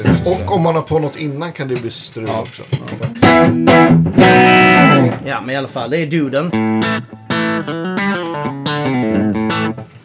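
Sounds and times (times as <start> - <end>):
electric guitar through Tube Screamer style overdrive pedal: 0.0 - 0.5, 2.9 - 5.5, 6.4 - 10.0
speech: 0.0 - 7.8.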